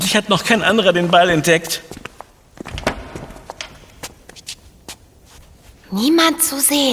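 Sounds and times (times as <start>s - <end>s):
speech: 0.2s - 2.0s, 5.9s - 6.9s
footsteps of a person walking ahead: 0.3s - 6.1s.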